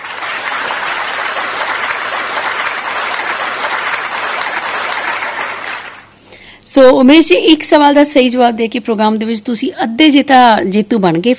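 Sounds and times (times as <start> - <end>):
recorded applause for a quiz winner: 0.0 - 6.2
speech: 6.8 - 11.3.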